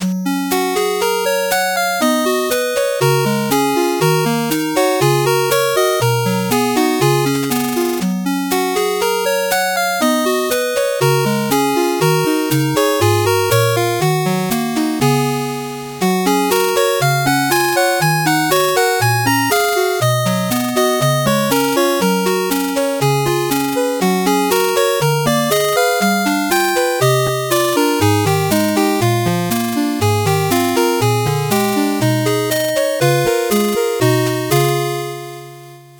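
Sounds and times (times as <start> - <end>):
fast 8-bit background music: 0.0 - 35.8.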